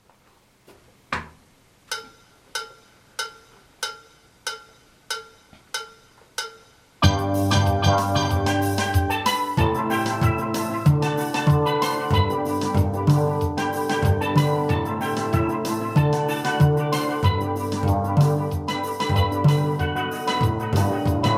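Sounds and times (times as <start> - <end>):
bass: 7.0 - 21.3.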